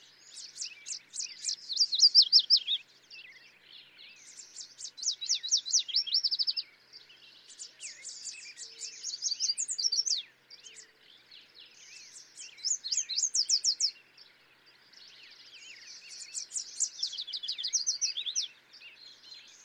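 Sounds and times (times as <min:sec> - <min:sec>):
yellow warbler singing: 0:00.0 - 0:19.6.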